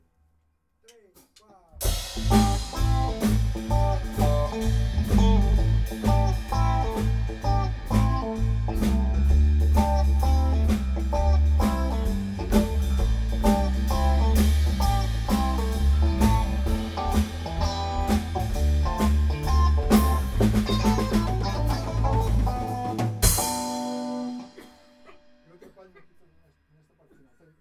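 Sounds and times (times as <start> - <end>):
blues music: 0.9 - 25.6.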